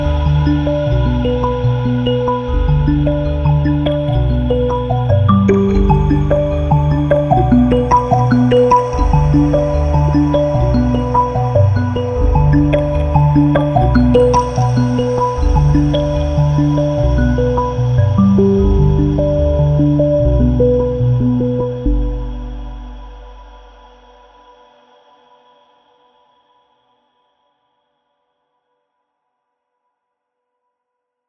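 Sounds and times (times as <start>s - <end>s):
mbira arpeggio: 0.0s - 22.4s.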